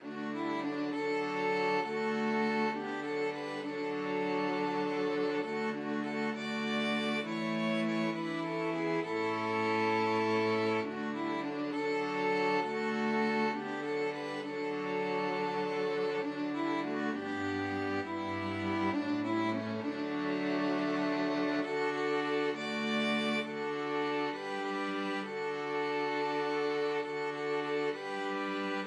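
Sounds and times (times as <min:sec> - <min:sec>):
string quartet playing a hymn: 0:00.0 - 0:28.8.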